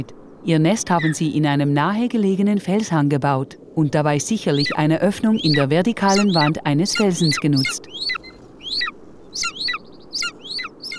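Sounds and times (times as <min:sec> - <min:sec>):
speech: 0:00.0 - 0:08.2
low steady hiss: 0:00.0 - 0:10.9
small birds trilling on a rocky mountain slope in winter: 0:04.3 - 0:10.9.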